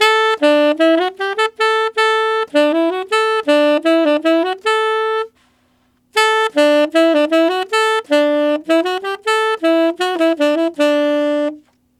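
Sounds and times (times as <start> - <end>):
tenor saxophone jazz polka loop in D major: 0.0 - 5.4, 6.1 - 11.8.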